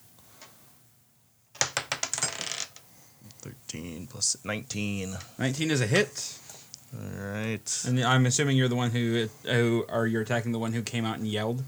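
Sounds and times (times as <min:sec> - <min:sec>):
dice clattering across a hard surface: 0:01.6 - 0:02.8
speech: 0:03.4 - 0:11.6.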